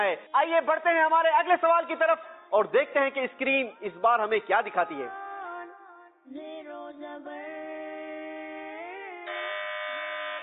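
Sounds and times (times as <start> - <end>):
speech: 0.0 - 5.2, 6.3 - 7.5
quiz contestant buzzer: 9.2 - 10.4.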